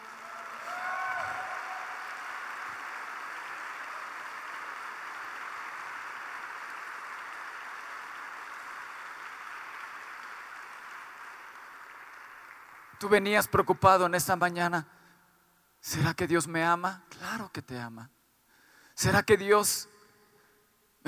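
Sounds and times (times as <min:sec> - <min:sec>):
audience applause: 0:00.0 - 0:13.6
speech: 0:13.0 - 0:15.0, 0:15.8 - 0:18.2, 0:19.0 - 0:19.9.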